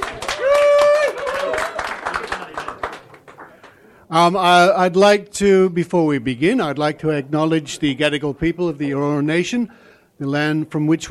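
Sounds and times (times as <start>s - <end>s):
audience clapping: 0.0s - 3.9s
speech: 4.1s - 11.0s.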